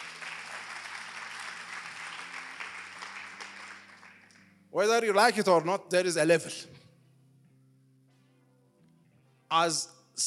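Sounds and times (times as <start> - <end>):
loud audience applause: 0.0 - 4.4
speech: 4.7 - 6.8, 9.5 - 10.2.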